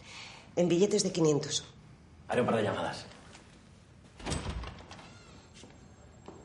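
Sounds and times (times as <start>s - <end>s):
speech: 0.6s - 3.2s
door shutting in a house: 4.2s - 5.3s.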